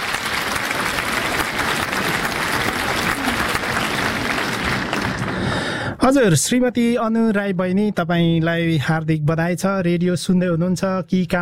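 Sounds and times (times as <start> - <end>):
listeners applauding a radio quiz winner: 0.0 - 6.0
speech: 6.0 - 11.3.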